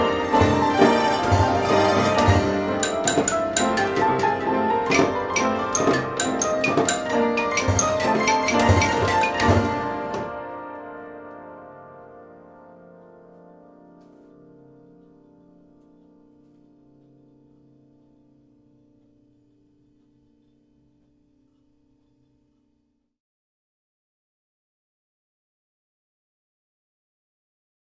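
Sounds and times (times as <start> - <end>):
orchestrion playing: 0.0 - 10.9.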